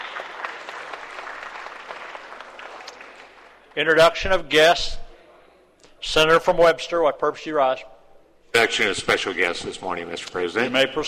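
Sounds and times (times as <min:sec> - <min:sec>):
applause in the State Capitol chamber welcoming guests: 0:00.0 - 0:03.8
speech: 0:03.8 - 0:05.0, 0:06.0 - 0:07.9, 0:08.5 - 0:11.0.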